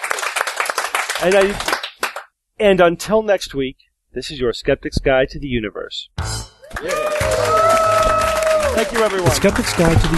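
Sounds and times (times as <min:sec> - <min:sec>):
audience applause: 0:00.0 - 0:02.2, 0:06.7 - 0:10.1
speech: 0:01.2 - 0:01.7, 0:02.6 - 0:07.8, 0:08.8 - 0:10.1.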